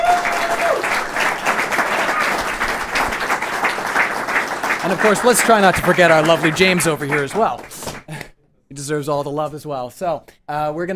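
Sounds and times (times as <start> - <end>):
audience applause: 0.0 - 8.1
speech: 4.9 - 7.9, 8.8 - 10.9.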